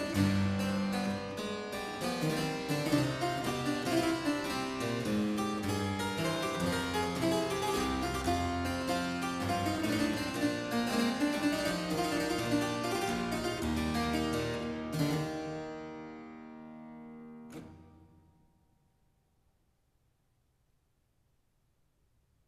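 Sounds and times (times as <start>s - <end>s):
harpsichord sarabande in F major: 0.0s - 17.6s.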